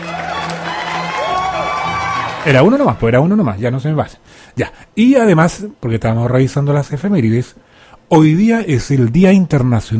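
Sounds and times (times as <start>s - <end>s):
applause: 0.0s - 3.2s
speech: 2.4s - 9.9s.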